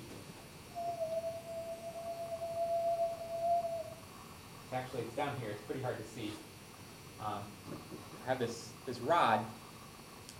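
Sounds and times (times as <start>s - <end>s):
person whistling a steady tone: 0.8s - 4.0s
speech: 4.7s - 6.5s, 7.2s - 9.6s.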